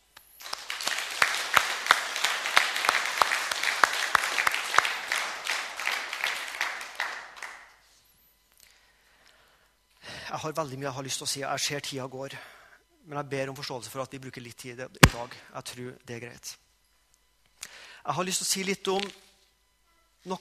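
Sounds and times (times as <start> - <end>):
audience applause: 0.4 - 7.7
speech: 10.3 - 16.6, 18.0 - 19.3.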